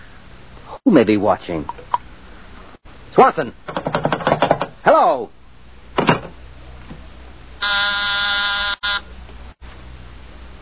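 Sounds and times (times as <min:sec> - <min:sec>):
speech: 0:00.9 - 0:01.8, 0:03.2 - 0:04.1, 0:04.8 - 0:05.4
harsh electric buzzer: 0:07.6 - 0:09.1.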